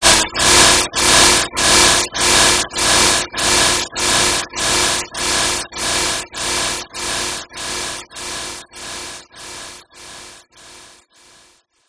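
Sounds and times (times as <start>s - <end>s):
long frequency modulation noisy burst: 0.0s - 9.1s.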